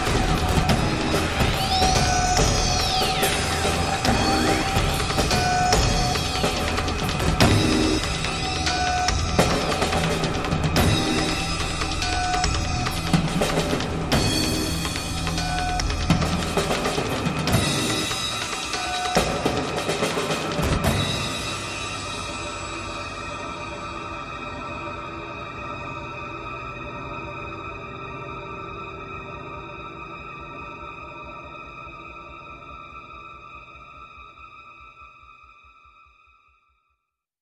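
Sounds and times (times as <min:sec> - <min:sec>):
slow drum: 0:00.0 - 0:22.6.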